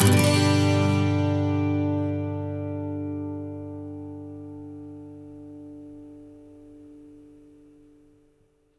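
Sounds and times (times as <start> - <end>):
12-string electric and acoustic guitar loop in G major: 0.0 - 7.5.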